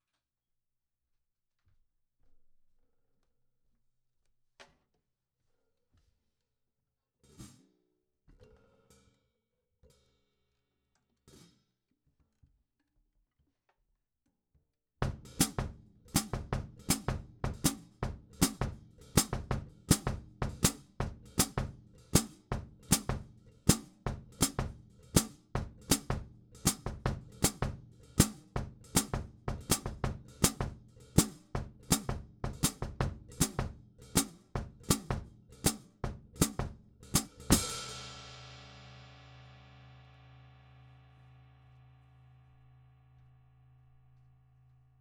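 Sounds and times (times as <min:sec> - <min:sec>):
percussion bridge hi-hat: 0:15.2 - 0:38.8.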